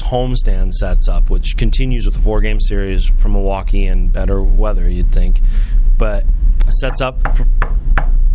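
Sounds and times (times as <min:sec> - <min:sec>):
speech: 0:00.1 - 0:08.2
knuckles knocking on wood: 0:06.8 - 0:08.2.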